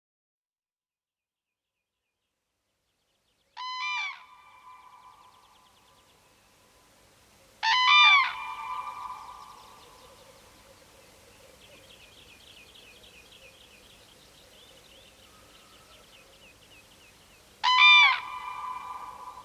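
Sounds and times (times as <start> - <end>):
Common crane bugling calls: 3.6 - 5.3, 7.6 - 10.2, 17.6 - 19.4.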